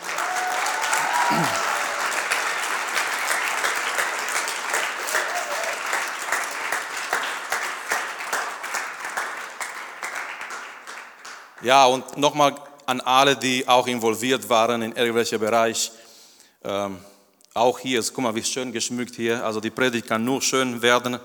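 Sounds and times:
audience applause: 0:00.0 - 0:11.6
speech: 0:01.3 - 0:01.6, 0:11.6 - 0:16.0, 0:16.6 - 0:21.2.

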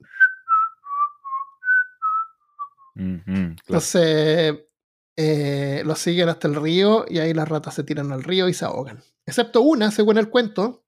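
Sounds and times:
person whistling a flute-like melody: 0:00.0 - 0:03.2
speech: 0:03.0 - 0:10.8.

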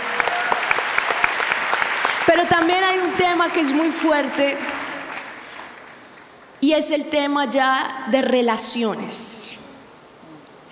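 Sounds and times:
crowd applauding: 0:00.0 - 0:06.6
speech: 0:02.3 - 0:04.8, 0:06.6 - 0:09.6.

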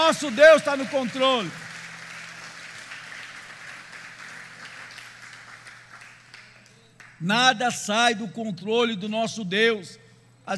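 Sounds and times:
audience applauding: 0:00.0 - 0:07.2
speech: 0:00.1 - 0:01.6, 0:07.2 - 0:10.5.

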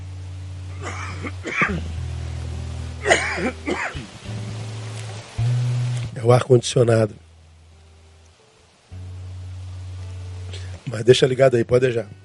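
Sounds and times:
person coughing: 0:00.8 - 0:01.8, 0:03.0 - 0:04.0
speech: 0:00.8 - 0:02.0, 0:03.0 - 0:04.6, 0:06.2 - 0:07.2, 0:10.9 - 0:12.2.

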